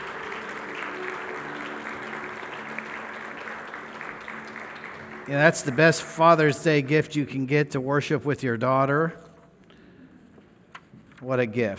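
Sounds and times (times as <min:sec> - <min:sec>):
crowd applauding: 0:00.0 - 0:07.0
speech: 0:05.3 - 0:09.2, 0:11.2 - 0:11.7.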